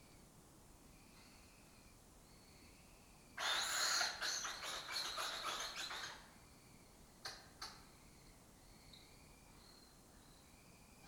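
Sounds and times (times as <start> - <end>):
lesser kestrels chattering: 3.4 - 6.3.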